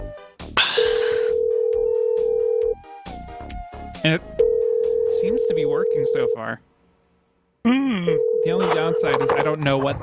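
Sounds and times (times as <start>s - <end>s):
telephone dial tone: 0.8s - 2.7s, 4.4s - 5.2s, 8.2s - 9.3s
speech: 4.0s - 4.4s, 5.2s - 6.7s, 7.6s - 10.0s.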